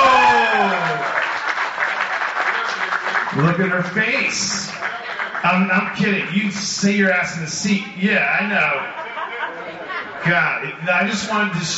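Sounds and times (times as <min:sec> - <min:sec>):
falling vocal whoop or cheer: 0:00.0 - 0:01.2
crowd applause: 0:00.0 - 0:11.7
speech: 0:03.4 - 0:09.0, 0:10.3 - 0:11.7
laughter: 0:07.8 - 0:11.7.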